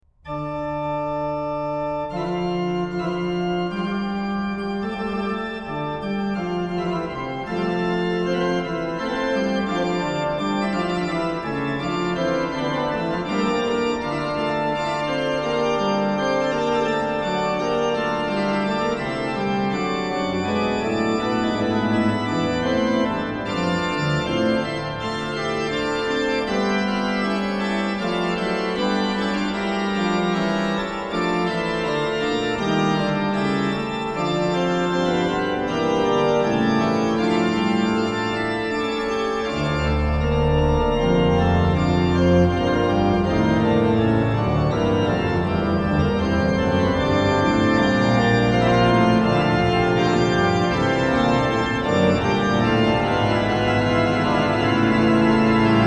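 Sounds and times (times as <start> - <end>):
organ fughetta: 0.0 - 55.8.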